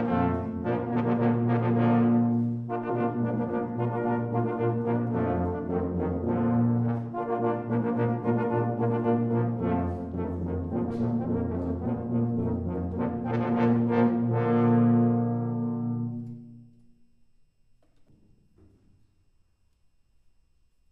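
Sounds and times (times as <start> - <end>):
trombone: 0.0 - 16.4.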